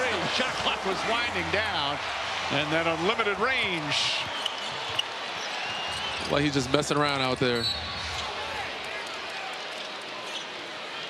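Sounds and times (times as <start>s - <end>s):
arena crowd buzzing after a three-pointer: 0.0s - 11.0s
speech: 0.4s - 4.4s, 6.3s - 7.8s.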